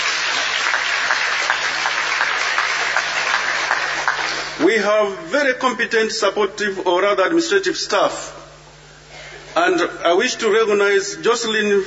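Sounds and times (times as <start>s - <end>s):
audience clapping: 0.0s - 4.6s
speech: 4.7s - 8.4s, 9.6s - 11.8s.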